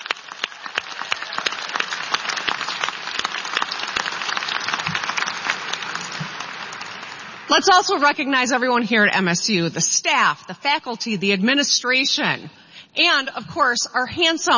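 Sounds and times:
audience applause at graduation ceremony: 0:00.0 - 0:07.8
speech: 0:07.5 - 0:14.5.

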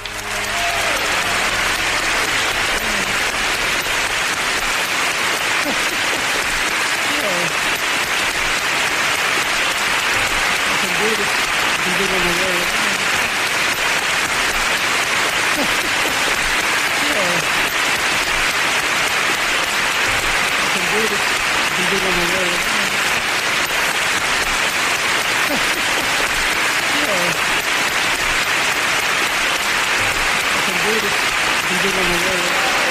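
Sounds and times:
laughter: 0:00.0 - 0:08.2, 0:10.0 - 0:13.4, 0:15.2 - 0:18.6, 0:20.0 - 0:24.2, 0:25.2 - 0:28.0, 0:29.9 - 0:32.8
faint voices and cheers: 0:00.0 - 0:24.6, 0:25.4 - 0:32.8
audience applause: 0:00.0 - 0:32.8.

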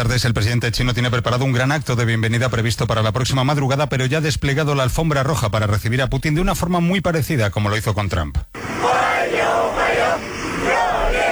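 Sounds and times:
speech: 0:00.0 - 0:08.9
crowd of children cheering: 0:08.6 - 0:11.3.

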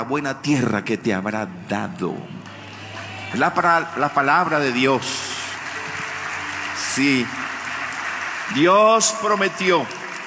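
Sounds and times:
speech: 0:00.0 - 0:02.4, 0:03.3 - 0:05.2, 0:07.0 - 0:07.5, 0:08.5 - 0:10.0
audience applause: 0:02.4 - 0:10.2.

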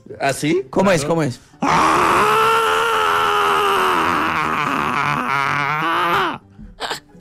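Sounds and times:
speech: 0:00.1 - 0:02.4
person imitating an angry cartoon scream: 0:01.6 - 0:06.4.

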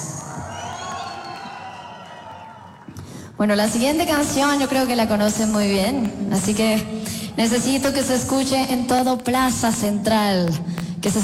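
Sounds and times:
live concert crowd cheering and applauding: 0:00.0 - 0:03.0
speech: 0:03.4 - 0:11.2.

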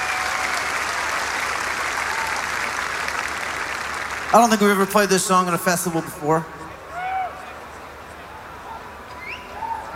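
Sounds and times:
crowd clapping and cheering: 0:00.0 - 0:05.0
speech: 0:04.3 - 0:06.6.

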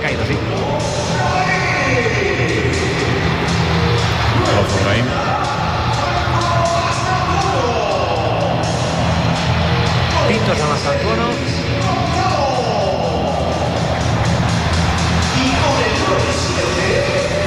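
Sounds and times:
stadium crowd whistling: 0:00.6 - 0:17.4.

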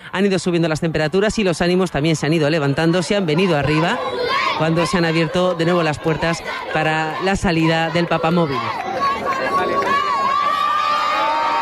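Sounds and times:
speech: 0:00.2 - 0:08.9
crowd cheering and applauding: 0:03.4 - 0:11.6.

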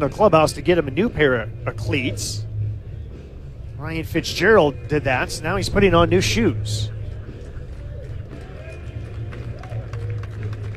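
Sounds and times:
speech: 0:00.0 - 0:02.5, 0:03.8 - 0:07.0
baseball crowd applauding: 0:07.1 - 0:10.7.

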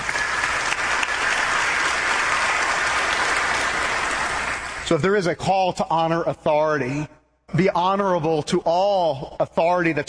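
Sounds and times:
audience applause: 0:00.0 - 0:04.8
speech: 0:04.9 - 0:10.0.

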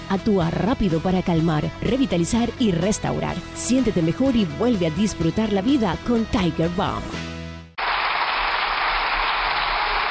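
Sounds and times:
speech: 0:00.1 - 0:07.3
parliamentary applause from deputies in a big hall: 0:07.8 - 0:10.0.

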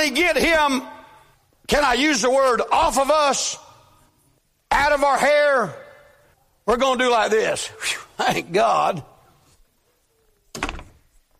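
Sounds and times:
speech: 0:00.0 - 0:01.0, 0:01.7 - 0:03.6, 0:04.7 - 0:05.8, 0:06.7 - 0:09.1
door shut with a dull heavy thunk: 0:10.5 - 0:11.0.

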